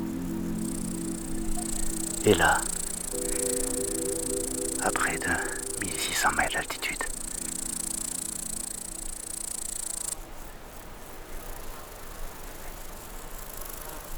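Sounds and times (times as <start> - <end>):
grasshoppers and crickets chirping in an alpine meadow at about 1600 metres: 0.0 - 10.2
speech: 2.2 - 2.7, 4.8 - 7.1.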